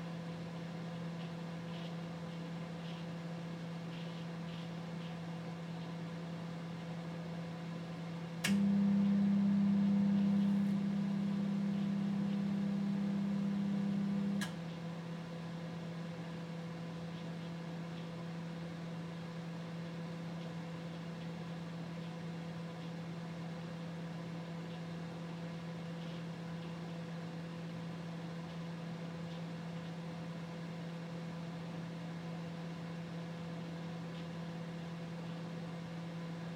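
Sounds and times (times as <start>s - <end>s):
LG microwave oven: 0.0s - 36.5s.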